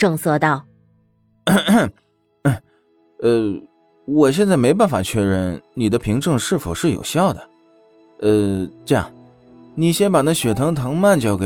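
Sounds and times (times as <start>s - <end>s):
speech: 0.0s - 0.7s, 1.5s - 7.5s, 8.2s - 9.2s, 9.8s - 11.4s
voice acting out feigned coughs: 1.5s - 2.6s.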